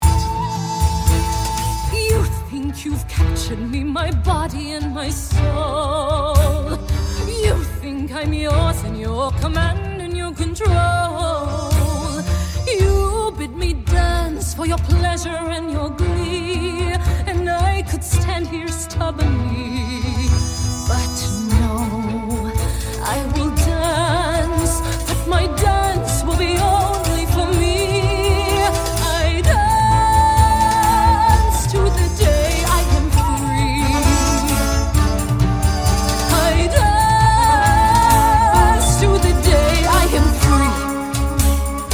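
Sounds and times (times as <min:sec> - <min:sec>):
adult woman singing in a cast recording: 0:00.0 - 0:41.8.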